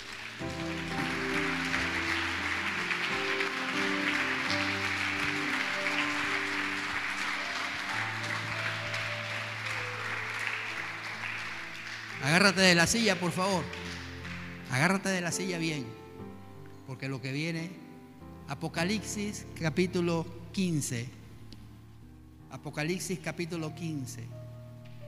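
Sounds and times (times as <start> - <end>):
audience applauding: 0.0 - 15.0
organ or keyboard chords: 0.0 - 25.0
speech: 12.4 - 13.9, 14.7 - 16.0, 16.9 - 17.8, 18.5 - 21.2, 22.5 - 24.4.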